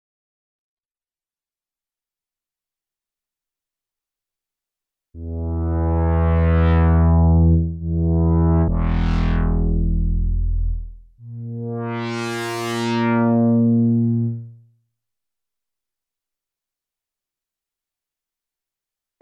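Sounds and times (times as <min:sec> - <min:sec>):
Novation PEAK synthesizer solo: 0:05.2 - 0:14.6.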